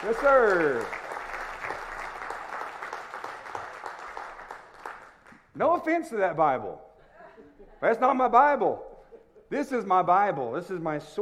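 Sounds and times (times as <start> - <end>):
speech: 0.0 - 1.0, 5.6 - 6.9, 7.6 - 8.9, 9.5 - 11.2
audience applause: 0.0 - 5.3.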